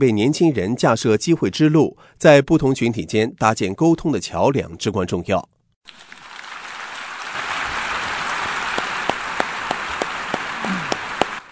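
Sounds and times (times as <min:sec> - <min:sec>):
speech: 0:00.0 - 0:06.1
audience applause: 0:05.9 - 0:11.4.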